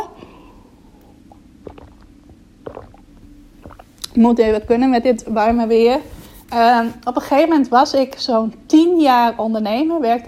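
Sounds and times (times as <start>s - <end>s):
person sipping water: 0.2s - 4.2s
speech: 4.2s - 10.2s.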